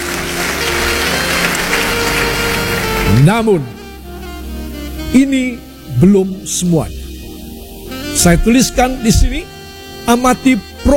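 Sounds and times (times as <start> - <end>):
audience applause: 0.0 - 3.4
speech: 3.2 - 3.8, 5.1 - 7.0, 8.2 - 9.5, 10.1 - 10.9.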